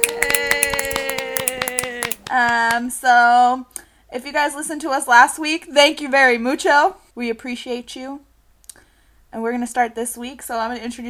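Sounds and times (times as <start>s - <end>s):
finger snapping: 0.0s - 2.8s
hands clapping: 0.0s - 2.9s
speech: 2.4s - 8.3s, 9.3s - 11.0s.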